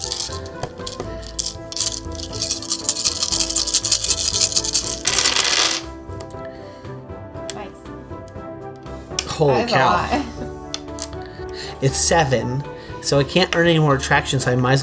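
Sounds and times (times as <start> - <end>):
many dice being rolled: 0.0 - 5.9
speech: 9.4 - 10.2, 11.8 - 14.8.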